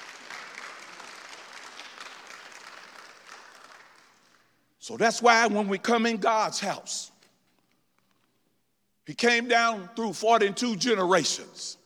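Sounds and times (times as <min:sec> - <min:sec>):
audience clapping in sustained applause: 0:00.0 - 0:04.6
speech: 0:04.8 - 0:07.1, 0:09.1 - 0:11.8.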